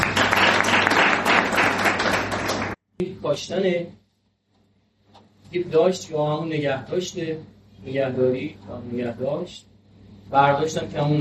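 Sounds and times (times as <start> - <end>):
crowd applauding: 0.0 - 2.8
speech: 3.2 - 4.0, 5.5 - 9.7, 10.3 - 11.2.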